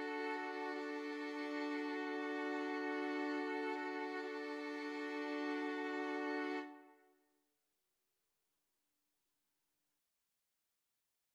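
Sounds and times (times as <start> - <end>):
violin trio: 0.0 - 6.9.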